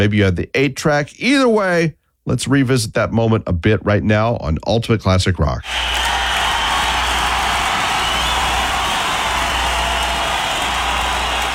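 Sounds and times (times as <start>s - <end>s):
speech: 0.0s - 6.2s
concert crowd cheering and clapping: 5.7s - 11.5s.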